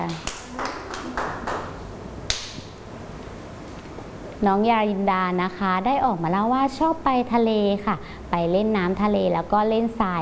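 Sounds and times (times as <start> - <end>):
children clapping: 0.0 - 2.6
speech: 4.4 - 10.1.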